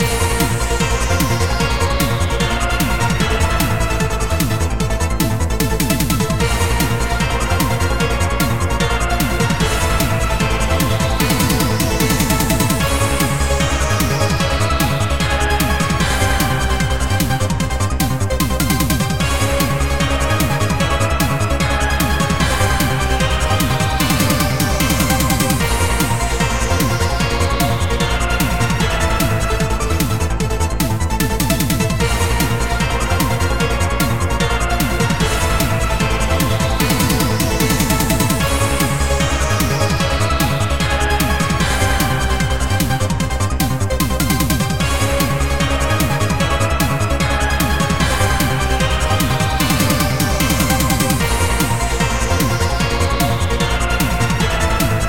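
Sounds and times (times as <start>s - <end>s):
cyberpunk midboss battle music: 0.0s - 55.0s.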